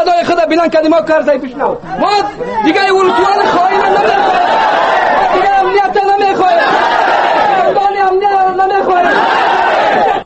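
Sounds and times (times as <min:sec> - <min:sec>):
speech: 0:00.0 - 0:04.5
protest crowd shouting: 0:02.6 - 0:10.2.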